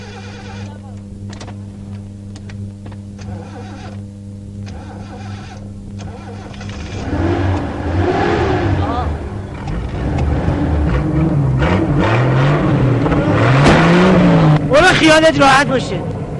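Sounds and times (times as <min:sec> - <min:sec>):
car engine being started and revved: 0:03.2 - 0:04.0, 0:04.6 - 0:16.3
speech: 0:15.2 - 0:16.1.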